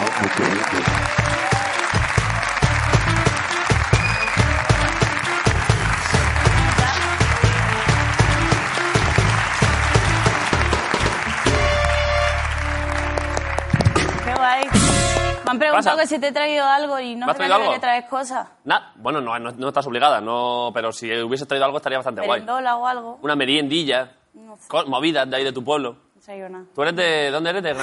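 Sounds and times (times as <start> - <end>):
studio audience applause in La Resistencia: 0.0 - 15.6
speech: 15.8 - 27.8.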